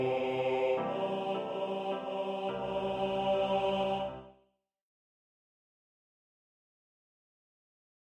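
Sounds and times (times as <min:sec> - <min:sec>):
gospel choir singing with tenor: 0:00.0 - 0:04.3.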